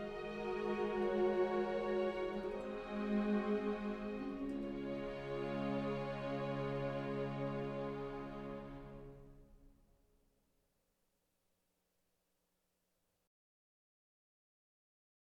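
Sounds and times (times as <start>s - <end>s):
orchestra: 0.0s - 9.8s.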